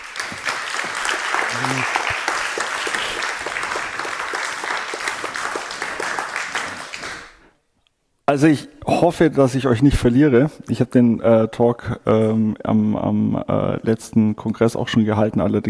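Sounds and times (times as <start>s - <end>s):
warm audience applause: 0.0s - 7.4s
speech: 8.3s - 15.6s.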